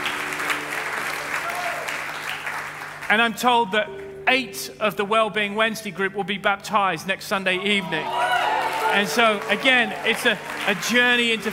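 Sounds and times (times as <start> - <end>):
audience applause: 0.0 - 3.1, 8.0 - 11.5
speech: 3.1 - 8.3, 8.9 - 11.5.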